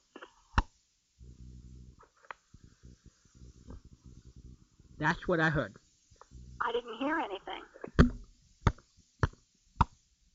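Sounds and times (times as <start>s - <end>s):
hollow champagne cork-like pops: 0.1s - 4.6s, 7.8s - 10.1s
speech: 5.0s - 5.8s.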